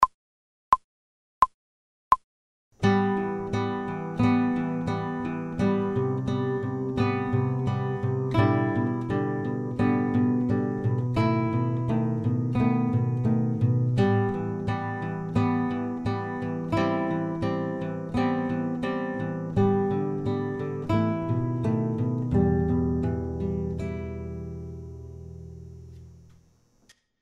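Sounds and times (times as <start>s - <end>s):
fast guitar playing without metronome: 2.8s - 25.6s.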